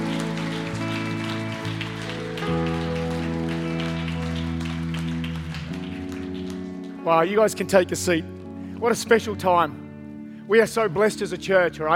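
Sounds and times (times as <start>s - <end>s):
church audience applause: 0.0s - 7.0s
sustained keyboard chords: 0.0s - 11.9s
speech: 7.1s - 9.8s, 10.5s - 11.9s.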